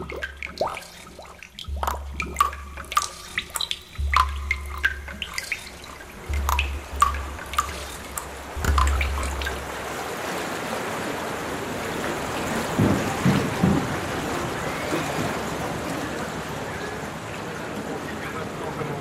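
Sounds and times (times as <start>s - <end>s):
water dripping in Paris: 0.0s - 18.9s.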